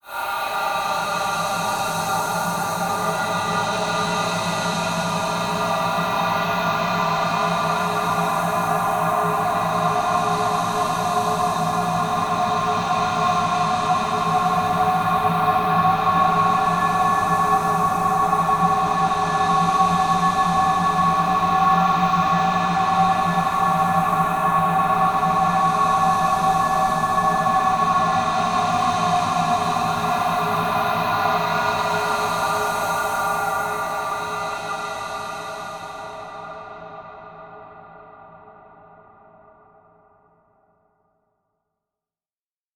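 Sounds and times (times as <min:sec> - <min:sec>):
horror thriller atmosphere drones: 0:00.1 - 0:38.8.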